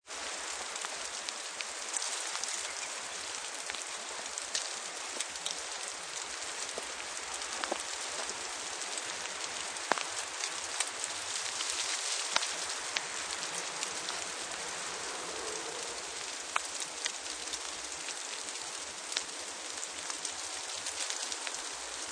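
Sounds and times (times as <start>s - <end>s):
snow falling through icy trees: 0.0s - 22.0s.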